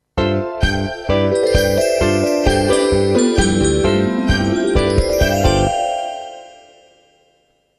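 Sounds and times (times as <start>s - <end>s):
clear bell jingle: 1.4s - 7.4s.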